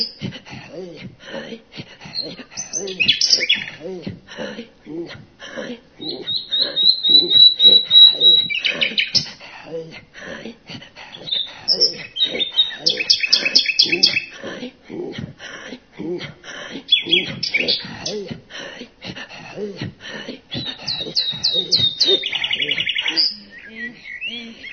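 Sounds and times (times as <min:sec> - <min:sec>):
common nightingale singing: 0:00.0 - 0:00.2, 0:02.1 - 0:04.0, 0:06.0 - 0:09.4, 0:11.1 - 0:14.4, 0:16.8 - 0:18.4, 0:20.5 - 0:24.7
laughter: 0:00.0 - 0:24.7.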